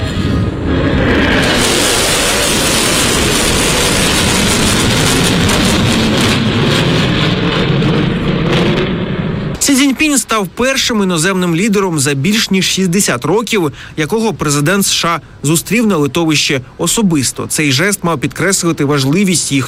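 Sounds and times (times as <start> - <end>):
military aircraft roaring overhead: 0.0 - 12.8
speech: 10.3 - 19.6.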